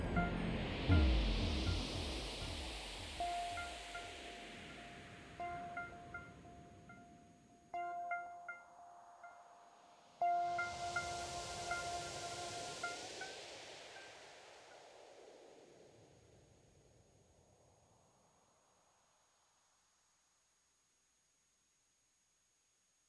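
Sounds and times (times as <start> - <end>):
instrumental music: 0.0 - 14.1.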